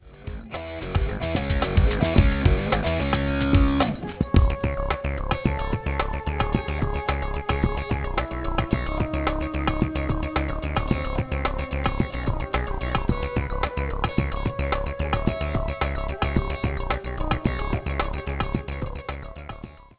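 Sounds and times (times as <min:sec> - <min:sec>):
8-bit mono music: 0:00.0 - 0:19.9.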